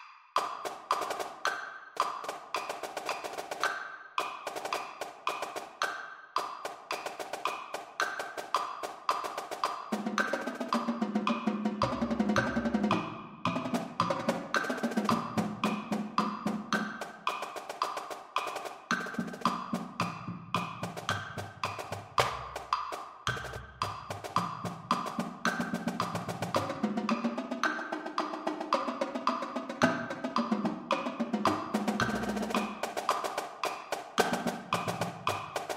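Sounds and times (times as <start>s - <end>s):
drumline: 0.4s - 5.9s, 6.4s - 35.7s.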